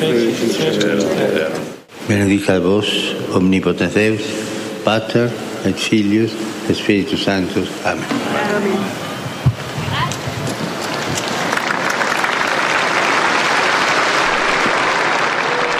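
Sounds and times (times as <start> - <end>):
speech: 0.0 - 9.0
large outdoor crowd applauding in a public square: 10.1 - 15.7.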